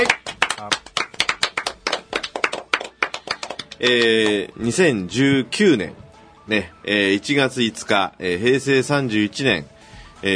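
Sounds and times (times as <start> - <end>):
applause: 0.0 - 4.4
speech: 3.8 - 10.3.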